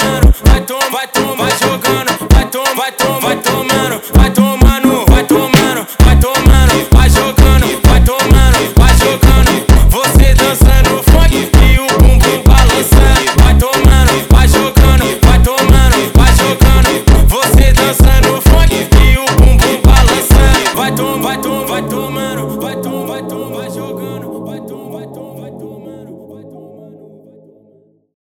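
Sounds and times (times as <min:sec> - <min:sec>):
distorted funk music: 0:00.0 - 0:21.2.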